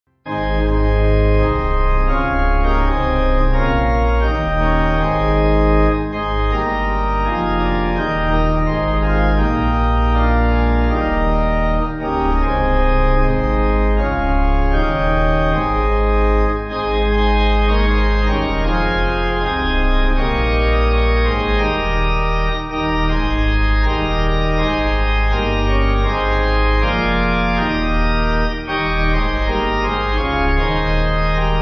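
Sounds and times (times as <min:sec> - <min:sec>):
pipe organ church music backing: 0:00.2 - 0:31.5.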